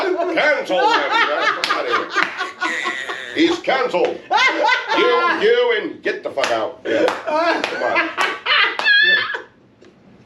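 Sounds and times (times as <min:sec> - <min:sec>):
laughter: 0:00.0 - 0:05.8, 0:06.8 - 0:09.5
speech: 0:00.4 - 0:01.4, 0:03.4 - 0:08.3
hands clapping repeatedly near microphone: 0:01.6 - 0:02.5, 0:06.4 - 0:09.4.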